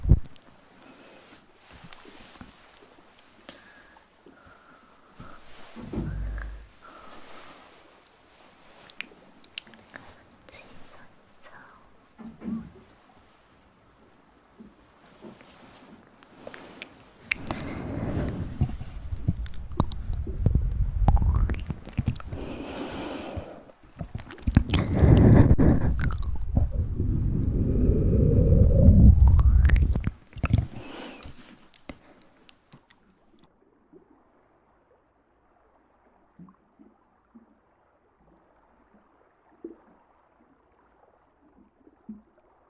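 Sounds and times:
wet mouth clicks and smacks: 0:17.3 - 0:22.6, 0:24.0 - 0:32.0.

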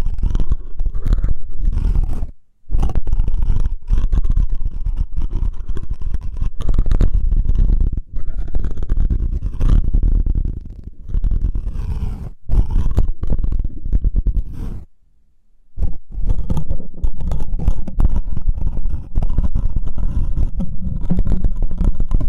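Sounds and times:
hair picking rough scratching: 0:00.0 - 0:14.9, 0:15.8 - 0:22.2.

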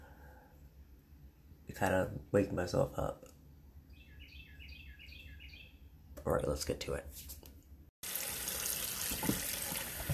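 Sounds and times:
speech: 0:01.7 - 0:03.3, 0:06.3 - 0:07.4
washing dishes from yesterday: 0:08.0 - 0:10.1.

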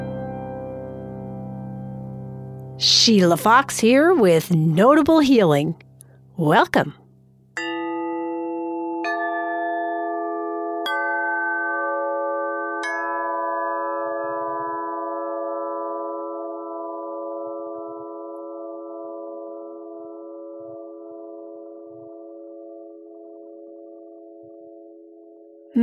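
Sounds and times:
speech: 0:03.0 - 0:07.0
chimes: 0:07.6 - 0:25.6.

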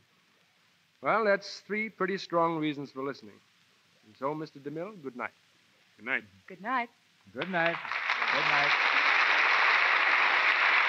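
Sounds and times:
speech: 0:01.0 - 0:03.5, 0:04.1 - 0:05.4, 0:06.0 - 0:08.9
studio audience applause: 0:07.4 - 0:10.8.

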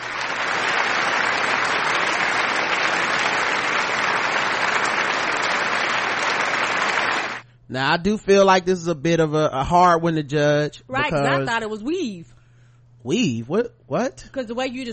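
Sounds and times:
crowd applause: 0:00.0 - 0:07.4
speech: 0:07.7 - 0:12.4, 0:13.0 - 0:14.9.

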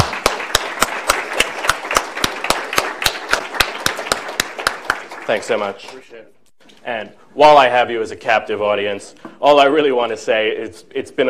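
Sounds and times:
hand claps: 0:00.0 - 0:06.0
speech: 0:05.3 - 0:11.2.

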